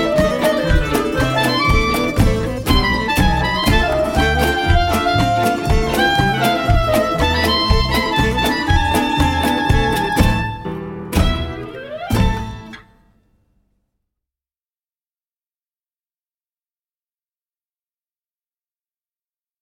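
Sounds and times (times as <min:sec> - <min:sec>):
instrumental music: 0:00.0 - 0:13.3.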